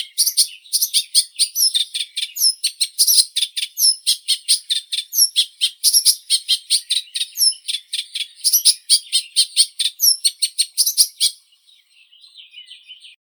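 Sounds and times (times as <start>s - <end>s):
reed warbler Acrocephalus scirpaceus singing: 0.0s - 13.2s.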